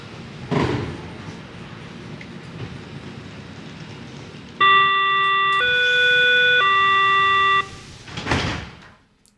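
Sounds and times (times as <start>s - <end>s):
S-Bahn rumbling rail noise: 0.0s - 9.0s
S-Bahn three-part electronic departure chime: 4.6s - 7.9s
S-Bahn doors hissing and closing: 5.6s - 6.2s, 7.0s - 9.0s.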